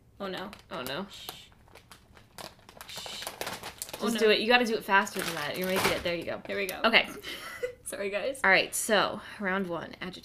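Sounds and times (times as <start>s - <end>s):
speech: 0.2s - 1.5s, 4.0s - 10.2s
crinkly bag of Doritos being moved: 0.4s - 6.8s.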